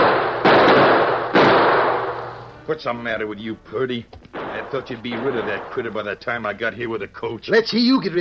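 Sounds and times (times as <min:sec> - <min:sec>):
gunshots: 0:00.0 - 0:02.3, 0:04.3 - 0:06.1
speech: 0:02.7 - 0:08.1.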